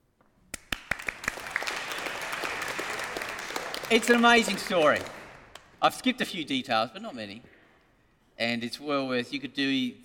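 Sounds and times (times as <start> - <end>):
audience applause: 0.6 - 5.6
speech: 3.9 - 5.2, 5.8 - 7.5, 8.4 - 10.0.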